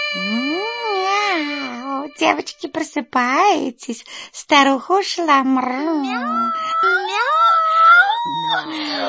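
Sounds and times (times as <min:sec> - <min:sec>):
person imitating cat meow: 0:00.2 - 0:01.1, 0:06.1 - 0:09.0
speech: 0:02.1 - 0:07.5, 0:08.5 - 0:09.0.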